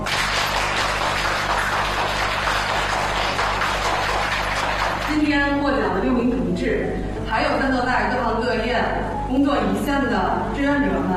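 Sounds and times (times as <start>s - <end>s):
audience applause: 0.0s - 5.3s
low constant hum: 0.0s - 11.1s
speech: 5.9s - 11.1s.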